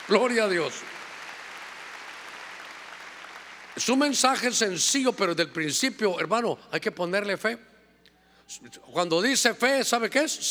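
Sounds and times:
audience clapping loudly: 0:00.0 - 0:03.9
speech: 0:00.1 - 0:01.0, 0:03.8 - 0:07.7, 0:08.5 - 0:10.4.

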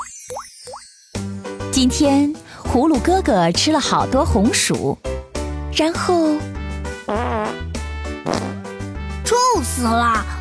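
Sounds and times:
speech: 0:01.7 - 0:05.1, 0:05.8 - 0:07.6, 0:09.3 - 0:10.3
cartoonish string of farts: 0:07.1 - 0:08.7.

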